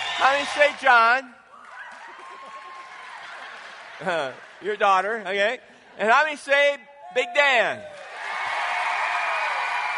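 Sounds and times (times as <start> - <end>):
audience sympathy applause: 0.0 - 4.8, 7.9 - 9.9
speech: 0.2 - 1.4, 4.0 - 8.0.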